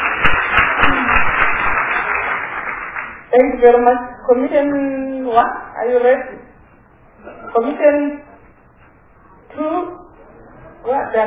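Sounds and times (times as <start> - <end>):
audience clapping: 0.0 - 3.3
speech: 3.3 - 6.4, 7.6 - 8.2, 9.6 - 10.0, 10.8 - 11.2.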